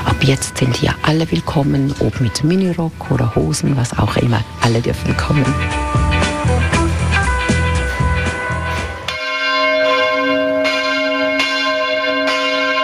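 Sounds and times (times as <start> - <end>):
church bells ringing ten o'clock: 0.0 - 12.8
speech: 0.2 - 6.0.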